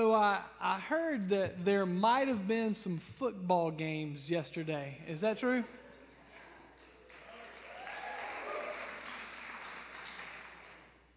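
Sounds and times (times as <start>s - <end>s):
speech: 0.0s - 5.8s
people clapping: 6.8s - 11.0s.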